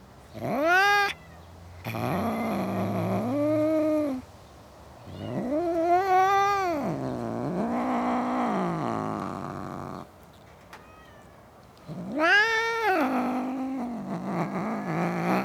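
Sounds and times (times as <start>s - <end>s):
domestic cat meowing in a suburban garden: 0.4s - 4.2s, 5.0s - 10.0s, 10.8s - 15.4s.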